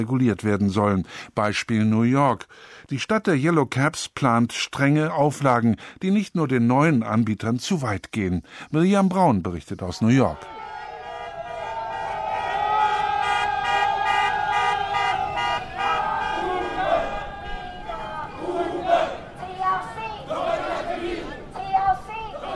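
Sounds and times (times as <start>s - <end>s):
speech: 0.0s - 10.6s
crowd of striking Uber drivers shouting and chanting in Manhattan: 10.2s - 22.5s
car horn toots: 10.9s - 17.8s.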